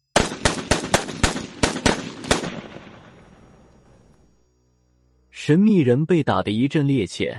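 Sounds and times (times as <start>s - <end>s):
pistol firing rapid shots, emptying the magazine: 0.2s - 3.0s
speech: 5.5s - 7.3s.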